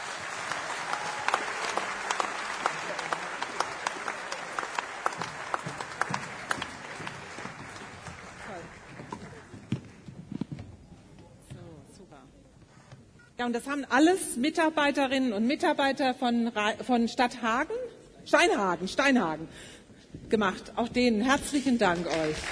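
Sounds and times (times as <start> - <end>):
audience applause: 0.0 - 10.0, 22.0 - 22.4
speech: 13.4 - 22.4.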